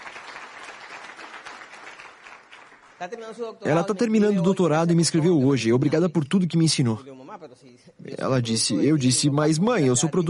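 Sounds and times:
audience applause: 0.0s - 3.2s
speech: 3.0s - 10.2s.

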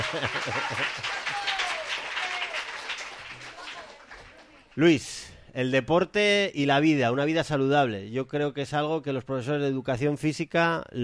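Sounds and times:
laughter: 0.0s - 2.4s
audience applause: 0.0s - 4.8s
speech: 0.1s - 1.5s, 4.8s - 11.0s.

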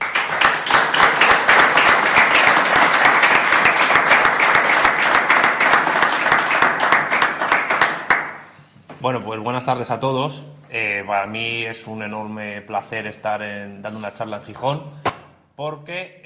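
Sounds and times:
audience applause: 0.0s - 8.4s
speech: 9.0s - 16.2s.

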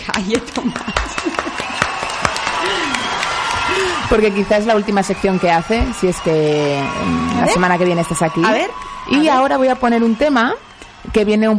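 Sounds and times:
small group applauding: 0.0s - 11.5s
speech: 0.1s - 1.2s, 4.1s - 11.5s
people laughing: 0.5s - 4.1s.

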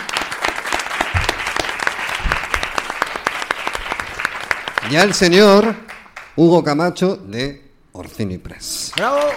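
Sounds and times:
audience applause: 0.0s - 6.4s, 8.9s - 9.3s
speech: 4.9s - 5.8s, 6.4s - 7.6s, 8.2s - 9.3s.

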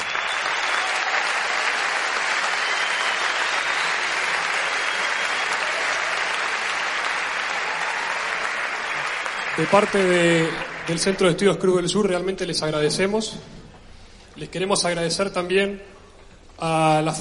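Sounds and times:
large audience applause: 0.0s - 11.5s
speech: 9.6s - 13.6s, 14.4s - 15.9s, 16.6s - 17.1s.

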